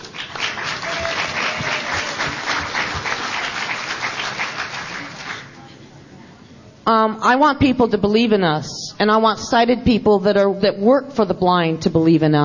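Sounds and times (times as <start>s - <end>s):
audience applause: 0.0s - 5.6s
speech: 6.9s - 12.4s.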